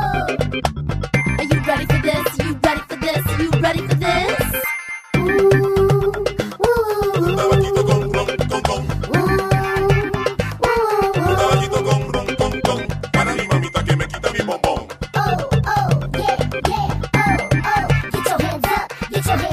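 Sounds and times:
salsa music: 0.2 - 19.5.

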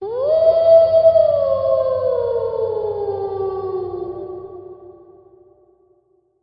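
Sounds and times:
werewolf howling: 0.0 - 5.0.

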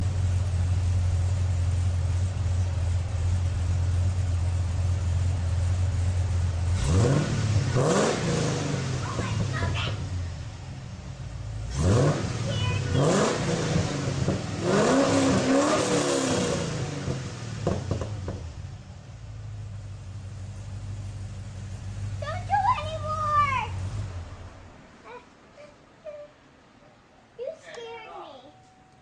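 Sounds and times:
Camaro SS: 0.0 - 28.1.

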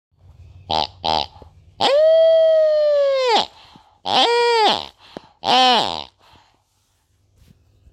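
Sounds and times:
toy pig: 0.6 - 6.3.

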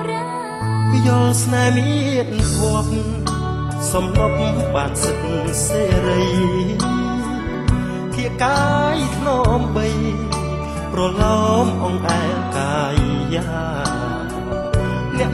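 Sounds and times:
Khmer song: 0.2 - 15.3.

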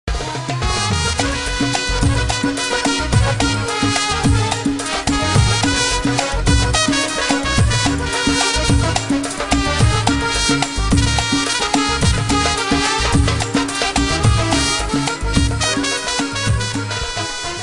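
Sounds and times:
trumpet: 0.1 - 17.6.

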